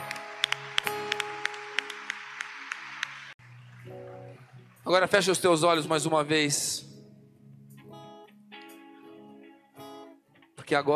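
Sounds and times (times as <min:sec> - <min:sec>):
audience applause: 0:00.0 - 0:05.6
speech: 0:04.9 - 0:06.9, 0:10.7 - 0:10.9.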